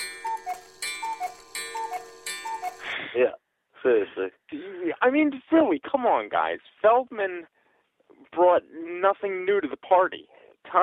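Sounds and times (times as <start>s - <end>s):
cuckoo clock sound effect: 0.0s - 3.1s
speech: 3.2s - 10.8s.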